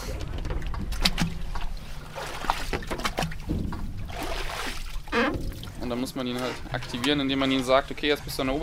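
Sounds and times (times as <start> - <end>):
water splashing and sloshing: 0.0 - 8.6
water sampler tube plunging into water: 0.9 - 5.8
speech: 5.9 - 8.6.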